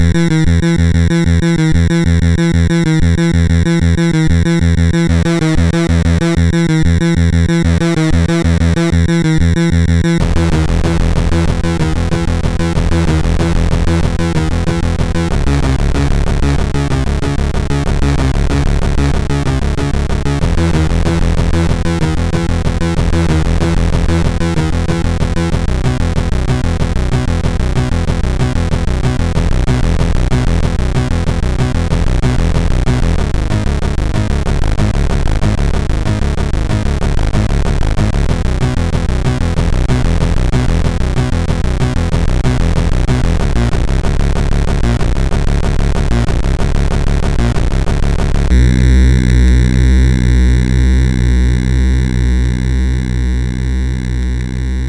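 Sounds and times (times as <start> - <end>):
techno on MOS6581R3: 0.0 - 54.8.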